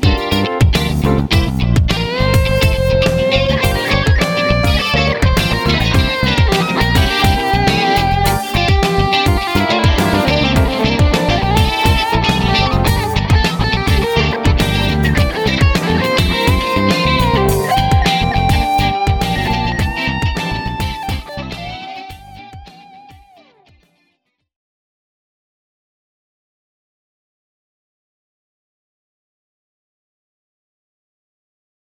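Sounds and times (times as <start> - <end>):
G minor funk music with solo: 0.0 - 24.1.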